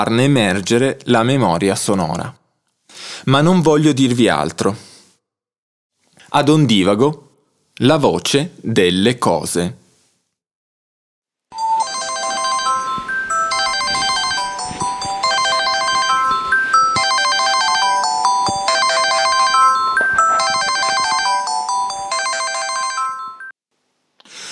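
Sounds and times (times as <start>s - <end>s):
speech: 0.0s - 4.9s, 6.3s - 7.2s, 7.8s - 9.8s
alarm clock ringing: 11.6s - 23.5s.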